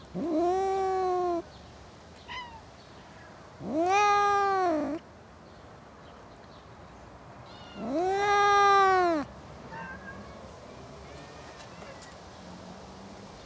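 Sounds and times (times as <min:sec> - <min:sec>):
speech: 0:00.2 - 0:00.4
cat yowling: 0:00.2 - 0:01.4, 0:02.3 - 0:02.6, 0:03.6 - 0:05.0, 0:07.5 - 0:10.4.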